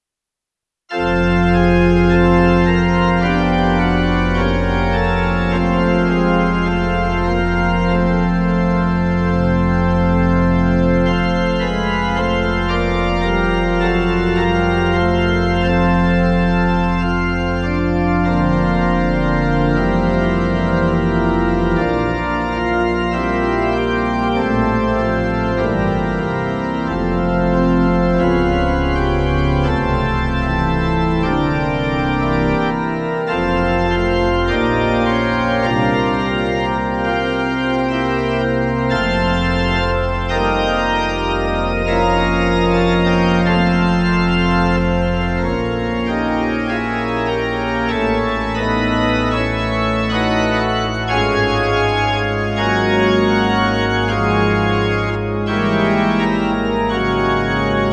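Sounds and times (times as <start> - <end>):
organ prelude: 0.9 - 57.9.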